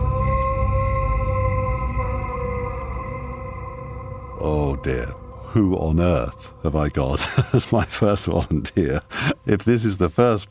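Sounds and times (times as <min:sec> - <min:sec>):
long blood-curdling howl: 0:00.0 - 0:05.5
low rumbling background: 0:00.0 - 0:10.4
speech: 0:04.4 - 0:10.4
laughter: 0:07.1 - 0:09.5.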